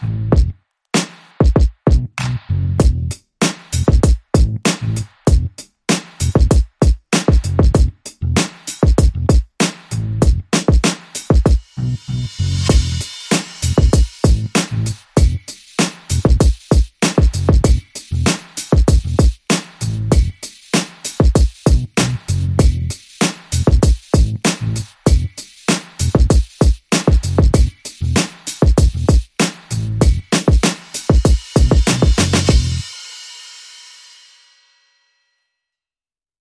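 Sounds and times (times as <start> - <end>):
bass: 0.0 - 0.6, 1.9 - 5.6, 6.2 - 6.5, 7.4 - 10.6, 11.7 - 15.5, 16.1 - 16.5, 17.3 - 20.5, 21.7 - 25.4, 26.0 - 26.4, 27.2 - 30.4, 31.6 - 32.9
drums: 0.0 - 34.7.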